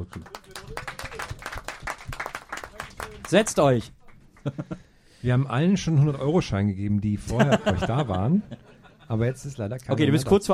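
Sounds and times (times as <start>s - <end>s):
speech: 0.0s - 0.8s, 3.3s - 10.5s
audience applause for latecomers: 0.0s - 3.8s
laughter: 4.4s - 4.9s, 7.2s - 9.4s.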